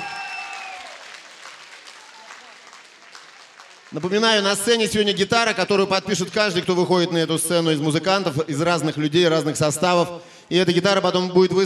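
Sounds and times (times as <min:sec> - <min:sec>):
audience applause: 0:00.0 - 0:04.8
speech: 0:03.9 - 0:11.6.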